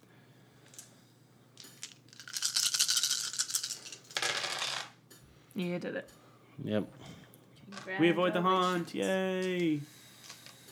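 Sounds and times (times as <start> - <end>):
handful of dice rattling and clattering: 1.6 - 4.9
speech: 5.6 - 10.0.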